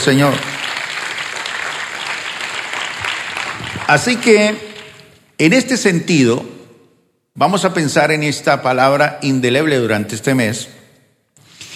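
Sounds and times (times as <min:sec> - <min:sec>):
speech: 0:00.0 - 0:00.5, 0:03.9 - 0:04.7, 0:05.4 - 0:06.6, 0:07.4 - 0:10.8
audience applause: 0:00.0 - 0:05.0.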